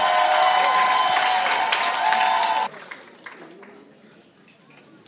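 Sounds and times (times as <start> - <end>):
audience clapping hands: 0.0 - 4.0.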